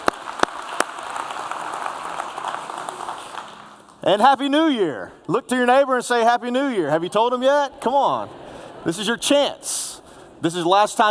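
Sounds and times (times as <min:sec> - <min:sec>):
crowd clapping: 0:00.0 - 0:04.0
speech: 0:04.0 - 0:11.0.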